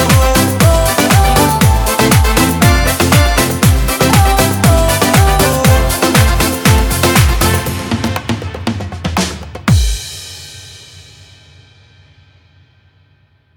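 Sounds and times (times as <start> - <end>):
Latin dance music for Zumba: 0.0 - 10.2.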